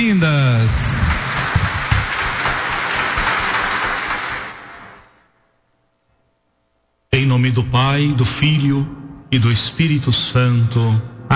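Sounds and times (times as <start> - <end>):
audience applause: 0.7 - 5.2
speech: 7.6 - 11.3.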